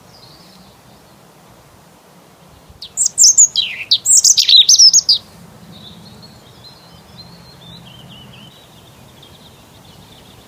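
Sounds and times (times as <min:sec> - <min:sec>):
several birds singing on an early spring morning: 0:00.0 - 0:01.3, 0:02.5 - 0:10.4.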